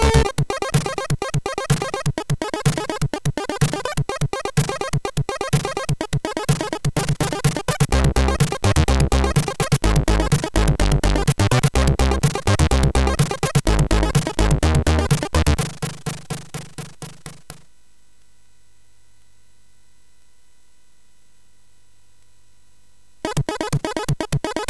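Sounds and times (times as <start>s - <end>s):
chiptune music on a MOS6581R3 SID chip: 0.0s - 17.6s, 23.3s - 24.6s.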